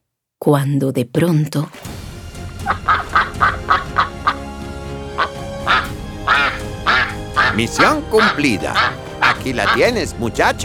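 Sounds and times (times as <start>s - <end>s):
speech: 0.4s - 1.9s, 7.6s - 10.6s
ducks quacking as they resurface from a pond: 2.5s - 10.3s.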